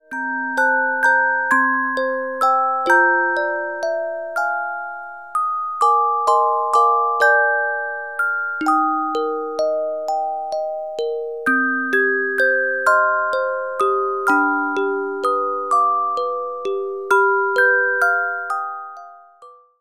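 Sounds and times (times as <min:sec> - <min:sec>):
carillon music box melodies: 0:00.1 - 0:19.8.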